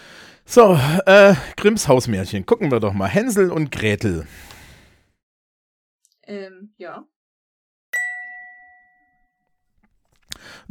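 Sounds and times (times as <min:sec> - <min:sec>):
speech: 0:00.5 - 0:04.6, 0:06.3 - 0:07.1
bright bell-like quiz-signal ding: 0:08.0 - 0:09.4.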